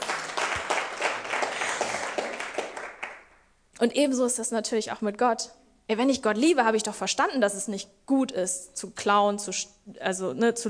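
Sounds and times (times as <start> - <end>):
audience applause: 0.0 - 3.3
speech: 3.8 - 10.6.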